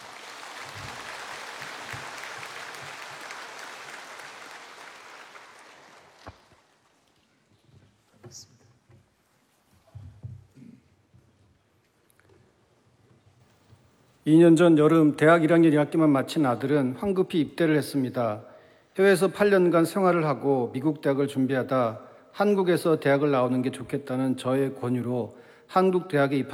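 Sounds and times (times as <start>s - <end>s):
audience applause welcoming speaker: 0.0s - 7.0s
speech: 8.3s - 8.5s, 14.3s - 26.5s.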